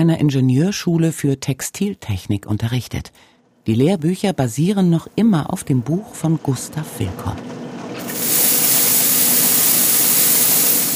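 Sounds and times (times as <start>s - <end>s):
speech: 0.0s - 7.6s
knitting machine Kuliermaschine running: 7.4s - 10.9s.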